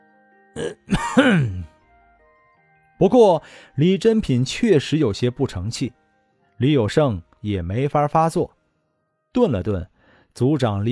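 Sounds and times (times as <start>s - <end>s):
person imitating an awkward cough: 0.6s - 1.7s
speech: 1.2s - 1.6s, 3.0s - 6.0s, 6.6s - 8.6s, 9.3s - 10.9s.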